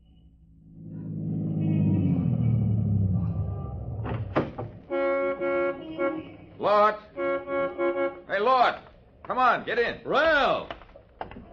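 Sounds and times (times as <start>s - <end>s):
brand-new Cadillac sedan engine slowing on a busy New Orleans corner: 0.6s - 6.6s
Cadillac sedan car horn: 4.7s - 8.8s
speech: 6.7s - 7.1s, 8.7s - 10.7s.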